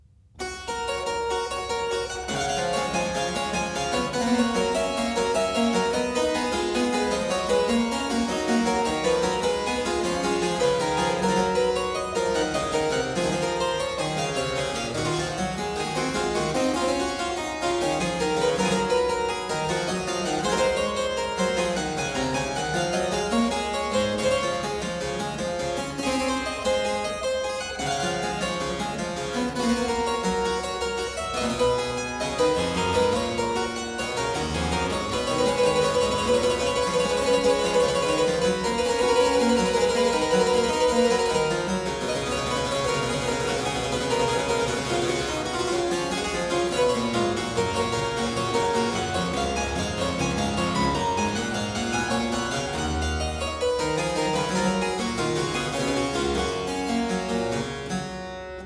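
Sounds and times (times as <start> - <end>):
two-part keyboard piece: 0.4 - 58.6.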